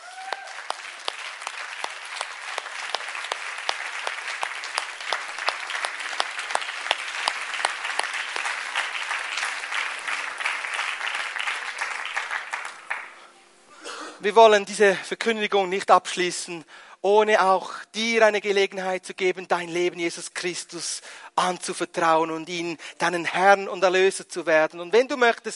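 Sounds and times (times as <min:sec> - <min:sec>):
audience applause: 0:00.0 - 0:13.4
speech: 0:14.2 - 0:25.5.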